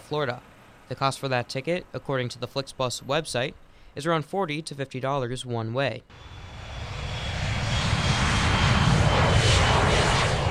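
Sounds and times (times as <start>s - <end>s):
speech: 0.1s - 6.4s
American Airlines Embraer 175 jet airliner flying: 6.1s - 10.4s.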